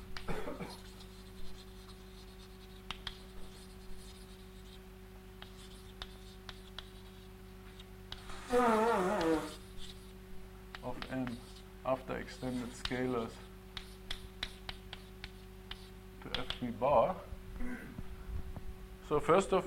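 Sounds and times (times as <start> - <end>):
chalk or marker strokes on a board during a maths lecture: 0.6 - 4.8, 5.4 - 16.6
speech: 8.5 - 8.8, 12.2 - 13.5, 16.6 - 17.8, 19.1 - 19.6.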